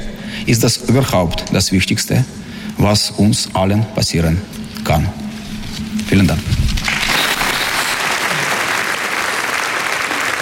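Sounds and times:
speech: 0.5 - 5.2, 6.1 - 6.6
applause after a speech: 6.9 - 10.4.

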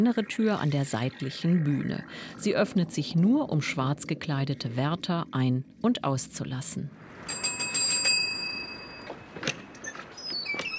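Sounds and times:
speech: 0.0 - 7.0
bell ringing: 7.2 - 9.7.

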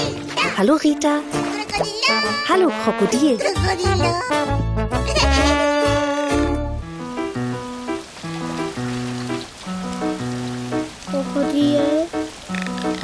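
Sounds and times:
speech: 0.6 - 5.6
steady rain hissing: 5.2 - 13.0.

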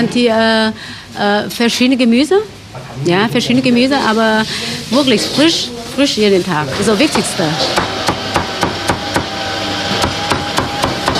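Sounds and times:
speech: 0.0 - 7.9
duck being chopped: 7.6 - 11.1.

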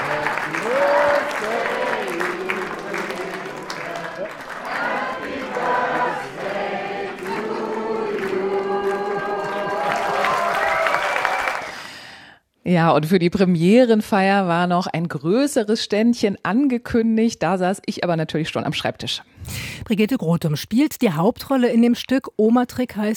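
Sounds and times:
theatre audience applause: 0.0 - 12.0
speech: 12.7 - 23.1.

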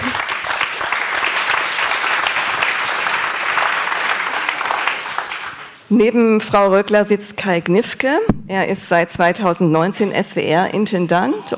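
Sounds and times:
audience applause: 0.0 - 5.9
speech: 5.9 - 11.5.

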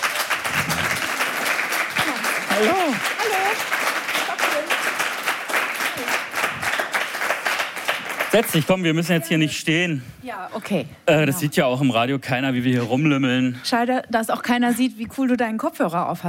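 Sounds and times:
audience applause: 0.0 - 9.6
speech: 2.6 - 4.0, 8.4 - 16.2.

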